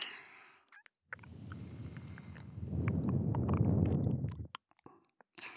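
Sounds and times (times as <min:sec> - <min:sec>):
ASMR ear licking sounds: 0:01.1 - 0:04.5.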